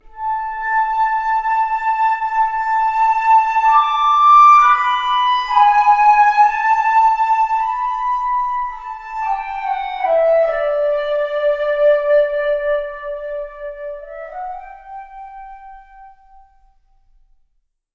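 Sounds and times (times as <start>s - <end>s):
flute: 0.0s - 17.0s.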